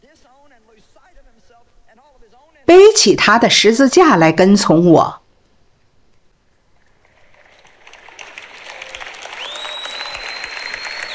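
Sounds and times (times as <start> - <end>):
speech: 0.1 - 5.2
audience applause: 6.8 - 11.1.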